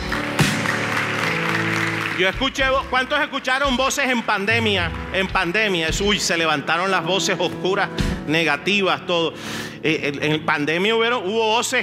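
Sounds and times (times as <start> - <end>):
audience applause: 0.0 - 4.8
speech: 2.2 - 11.8.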